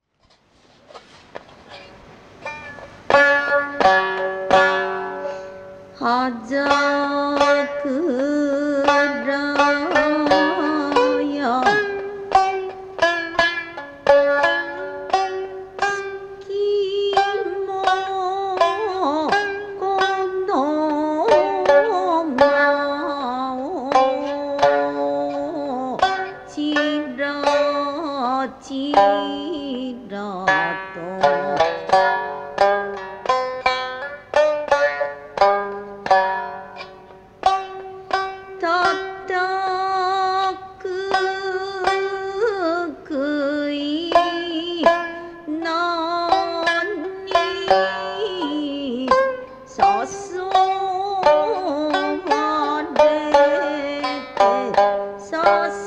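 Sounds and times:
shamisen: 0:00.2 - 0:55.8.

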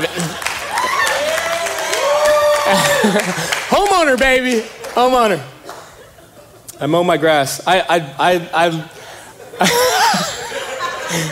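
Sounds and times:
laughter: 0:00.0 - 0:01.6, 0:02.4 - 0:07.0, 0:08.6 - 0:11.3
person clapping hands: 0:00.1 - 0:05.9
speech: 0:02.7 - 0:05.6, 0:06.8 - 0:09.0, 0:09.6 - 0:10.3, 0:11.1 - 0:11.3.

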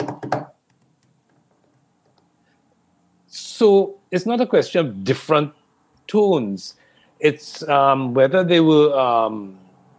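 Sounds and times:
hand drumming on a table with fingertips and palm: 0:00.0 - 0:00.6
speech: 0:00.3 - 0:00.5, 0:03.6 - 0:09.6.

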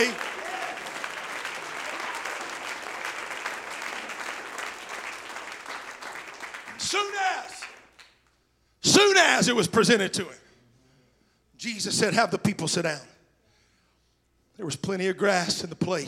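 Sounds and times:
audience clapping: 0:00.0 - 0:08.3
speech: 0:09.4 - 0:10.4, 0:11.6 - 0:13.1, 0:14.6 - 0:16.0.

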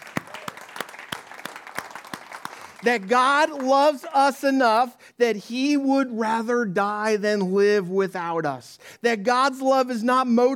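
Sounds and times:
audience clapping: 0:00.0 - 0:04.2
speech: 0:02.8 - 0:10.5.

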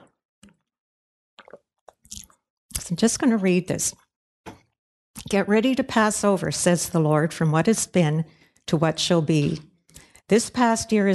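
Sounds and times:
person drinking water: 0:01.4 - 0:02.4
speech: 0:02.9 - 0:04.0, 0:05.3 - 0:09.7, 0:10.3 - 0:11.1.

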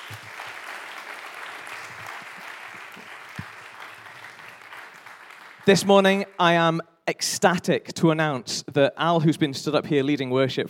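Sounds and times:
audience applause: 0:00.0 - 0:06.3
speech: 0:05.7 - 0:10.6.

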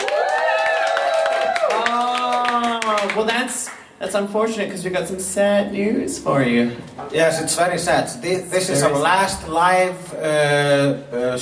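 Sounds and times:
crowd shouts and whoops: 0:00.0 - 0:01.9
crowd clapping: 0:00.0 - 0:03.9
speech: 0:03.0 - 0:11.3.

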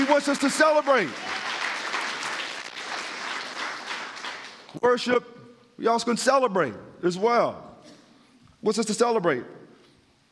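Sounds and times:
audience round of applause: 0:00.0 - 0:04.7
speech: 0:00.1 - 0:01.4, 0:04.7 - 0:07.7, 0:08.6 - 0:09.6.

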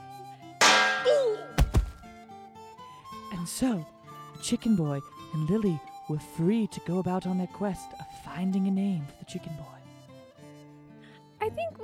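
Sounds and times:
heavy thunks: 0:00.6 - 0:02.1
metal pan strike: 0:00.6 - 0:02.1
speech: 0:03.4 - 0:09.8.

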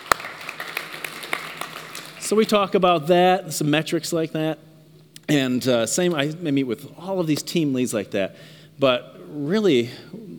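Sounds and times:
hand clapping: 0:00.0 - 0:02.2
speech: 0:02.3 - 0:04.7, 0:05.3 - 0:10.2.

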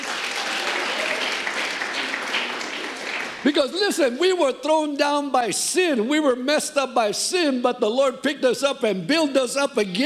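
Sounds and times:
audience clapping: 0:00.0 - 0:03.5
speech: 0:03.4 - 0:10.0.

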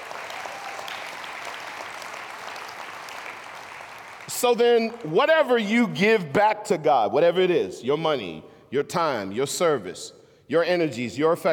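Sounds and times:
audience hand clapping: 0:00.0 - 0:05.6
speech: 0:04.3 - 0:11.5.

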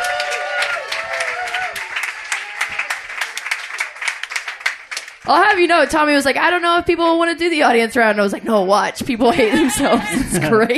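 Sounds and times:
audience applause at a comedy show: 0:00.0 - 0:05.3
speech: 0:05.3 - 0:10.7
laughter: 0:09.2 - 0:10.7.

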